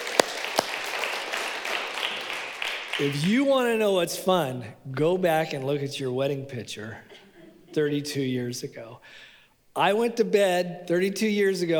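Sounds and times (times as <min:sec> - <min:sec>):
audience clapping: 0:00.0 - 0:03.3
speech: 0:03.0 - 0:07.1, 0:07.7 - 0:11.7.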